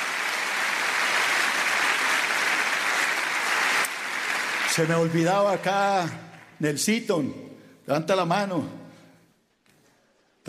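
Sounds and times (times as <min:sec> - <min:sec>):
audience applause: 0:00.0 - 0:06.6
speech: 0:04.8 - 0:08.8.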